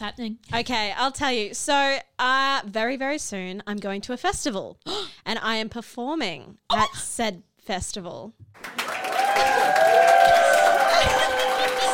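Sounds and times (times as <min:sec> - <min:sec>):
speech: 0:00.0 - 0:08.8
applause sound effect: 0:08.6 - 0:11.9.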